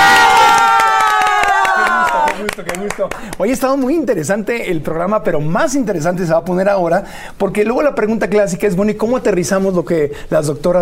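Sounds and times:
studio audience high-pitched whoops: 0.0 - 2.4
studio audience clapping: 0.0 - 3.8
speech: 2.9 - 10.8.

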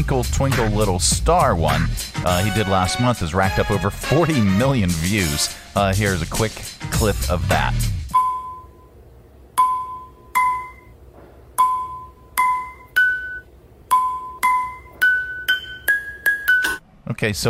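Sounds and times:
speech: 0.0 - 8.0, 17.2 - 17.4
ping pong balls bouncing on pots and pans making notes: 11.6 - 16.8.

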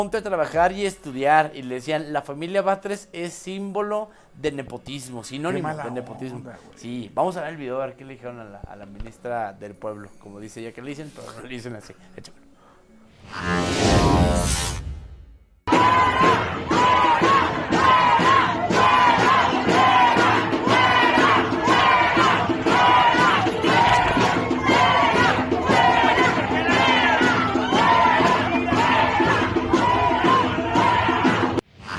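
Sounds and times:
speech: 0.0 - 12.4, 13.3 - 13.9
large crowd chanting and shouting: 15.7 - 31.6.

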